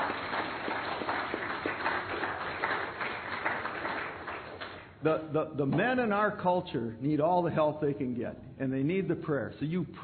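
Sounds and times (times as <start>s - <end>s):
audience applause: 0.0s - 4.8s
speech: 5.0s - 10.0s.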